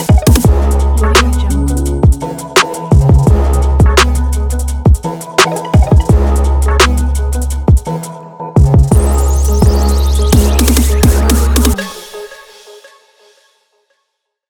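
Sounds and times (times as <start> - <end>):
mysterious beat: 0.0 - 8.0, 8.6 - 12.1.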